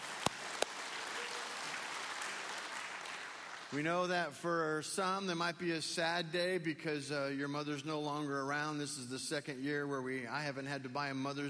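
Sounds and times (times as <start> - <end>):
audience applause for moms and grandmas: 0.0 - 3.8
speech: 3.7 - 11.4.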